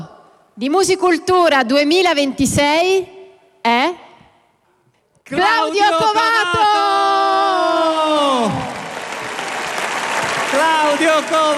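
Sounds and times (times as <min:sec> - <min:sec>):
speech: 0:00.6 - 0:04.0, 0:05.3 - 0:06.6
audience applause: 0:07.6 - 0:11.5.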